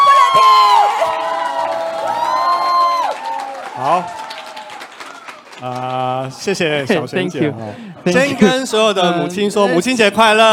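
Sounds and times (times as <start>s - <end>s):
audience cheering: 0.0s - 6.0s
audience applause: 0.0s - 6.8s
speech: 6.3s - 10.5s.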